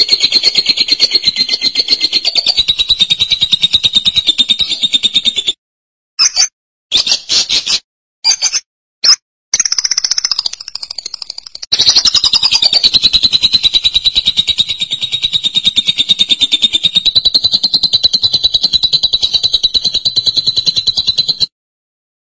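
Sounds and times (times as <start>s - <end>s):
lovebird chattering: 0.0s - 5.5s, 9.6s - 21.5s.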